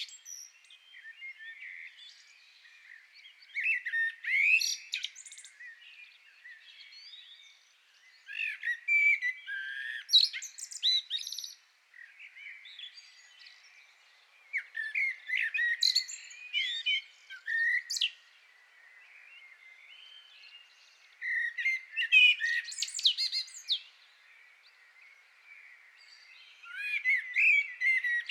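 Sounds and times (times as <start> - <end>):
common blackbird singing: 0.0 - 28.2.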